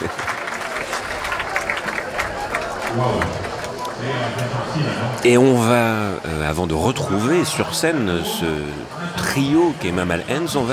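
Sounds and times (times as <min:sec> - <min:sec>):
concert audience applauding and cheering a band: 0:00.0 - 0:04.7
speech: 0:03.0 - 0:03.4, 0:04.0 - 0:10.7.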